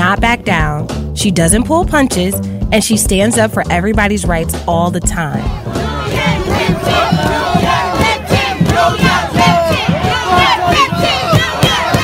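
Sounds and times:
speech: 0.3s - 5.8s, 6.6s - 7.7s
large protest crowd chanting and shouting: 5.2s - 12.0s.

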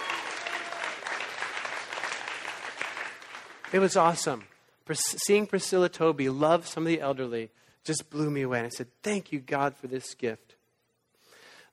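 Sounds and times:
audience clapping: 0.0s - 4.8s
speech: 3.7s - 10.6s.

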